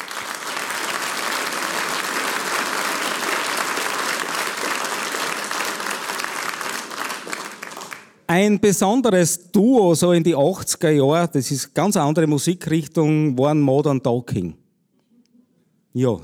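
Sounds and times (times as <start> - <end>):
audience applause: 0.0 - 8.2
speech: 8.3 - 14.6, 15.9 - 16.2.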